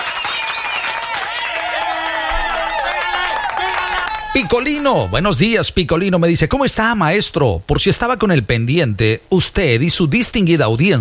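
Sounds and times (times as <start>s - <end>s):
whistle-like tones: 0.0s - 1.5s
audience applause: 0.0s - 5.4s
crowd cheering: 0.0s - 5.7s
speech: 4.4s - 10.9s.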